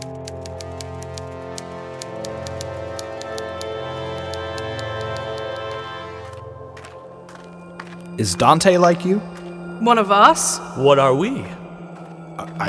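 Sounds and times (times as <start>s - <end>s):
typewriter keys striking in crisp clicks: 0.0s - 5.8s
sustained music: 0.0s - 12.6s
speech: 8.2s - 11.6s.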